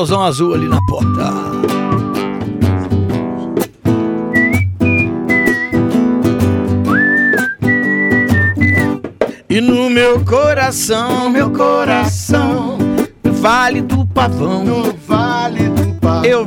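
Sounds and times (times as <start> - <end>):
speech: 0.0 - 2.2, 9.6 - 12.6, 13.4 - 16.4
person whistling a lilting high melody: 0.0 - 2.4, 4.3 - 6.0, 6.8 - 9.0
instrumental backing music: 0.0 - 16.4.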